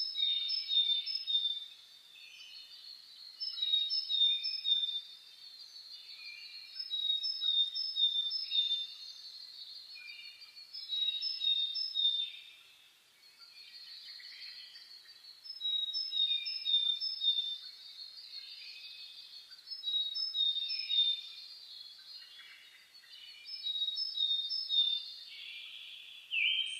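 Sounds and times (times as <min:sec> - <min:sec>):
dawn chorus of several birds: 0:00.0 - 0:26.7.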